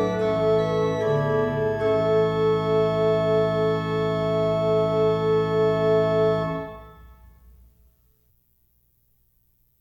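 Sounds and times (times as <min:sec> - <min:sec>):
organ chorale prelude: 0:00.0 - 0:07.5.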